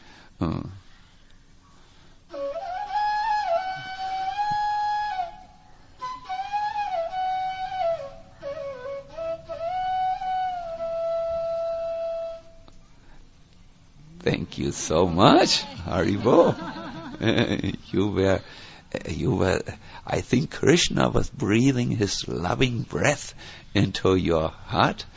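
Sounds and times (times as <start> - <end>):
speech: 0.4 - 0.8, 14.6 - 25.1
sweet joyous flute melody: 2.3 - 12.6
laughter: 15.2 - 18.0.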